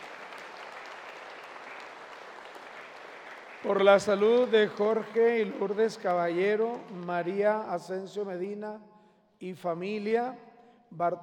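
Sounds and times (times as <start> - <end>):
applause: 0.0 - 8.0
speech: 3.6 - 11.2.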